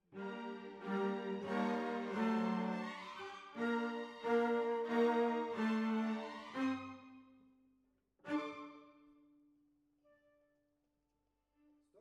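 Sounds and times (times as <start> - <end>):
cellos playing: 0.0 - 7.2, 8.3 - 9.0.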